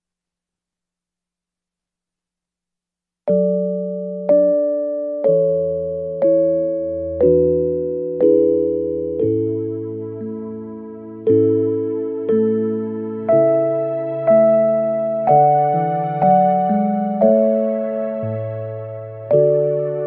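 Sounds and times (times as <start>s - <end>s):
nursery rhyme accompaniment: 3.3s - 20.0s.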